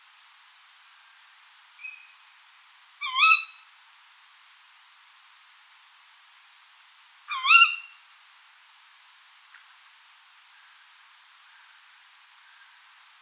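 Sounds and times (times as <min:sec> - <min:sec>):
tawny owl shrill kewick calls: 0:03.0 - 0:03.6, 0:07.3 - 0:08.0.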